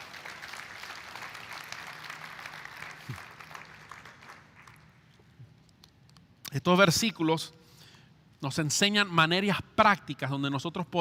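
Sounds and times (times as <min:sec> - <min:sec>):
audience applause: 0:00.0 - 0:05.0
speech: 0:06.5 - 0:07.6, 0:08.4 - 0:11.0.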